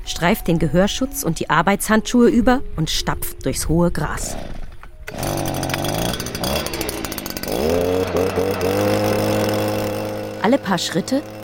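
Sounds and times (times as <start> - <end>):
speech: 0.2 - 5.3, 10.4 - 11.4
backpack leaf vacuum running: 4.3 - 11.4.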